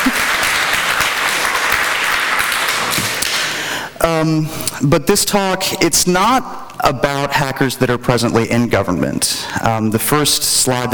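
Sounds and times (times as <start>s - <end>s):
audience applause: 0.0s - 3.6s
speech: 4.0s - 10.9s.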